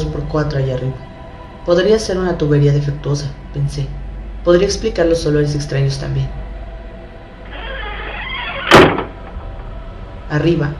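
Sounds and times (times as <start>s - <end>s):
speech: 0.3s - 6.4s, 10.3s - 10.7s
basement door slamming shut: 7.5s - 9.7s.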